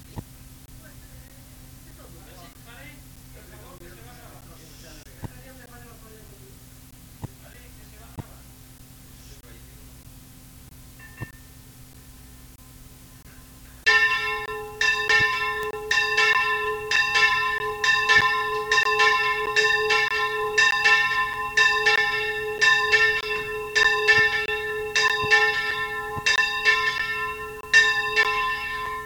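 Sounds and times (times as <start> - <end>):
bell: 11.0 - 11.6, 13.8 - 29.0.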